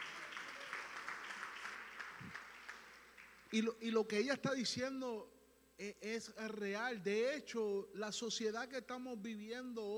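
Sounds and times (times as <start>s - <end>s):
audience applauding: 0.0s - 3.6s
speech: 3.5s - 9.9s.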